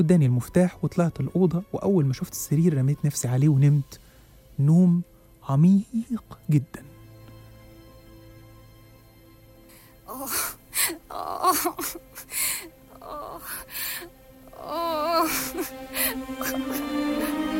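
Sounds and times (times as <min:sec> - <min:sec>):
speech: 0:00.0 - 0:04.0, 0:04.6 - 0:06.9, 0:10.1 - 0:17.5
woman crying in pain, sobbing and wailing: 0:10.1 - 0:17.5.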